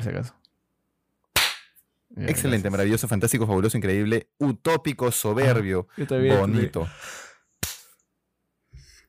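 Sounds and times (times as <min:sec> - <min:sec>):
speech: 0:00.0 - 0:00.4, 0:02.1 - 0:07.3
single hand clap: 0:01.4 - 0:01.8, 0:07.6 - 0:08.0.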